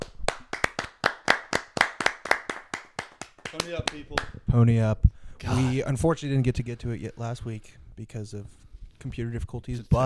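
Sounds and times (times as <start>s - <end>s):
round of applause: 0.0s - 4.3s
speech: 3.5s - 10.0s.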